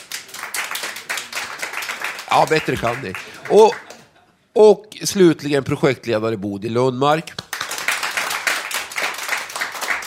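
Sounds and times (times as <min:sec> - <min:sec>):
audience applause: 0:00.0 - 0:04.0, 0:07.4 - 0:10.0
speech: 0:02.3 - 0:03.9, 0:04.6 - 0:07.4.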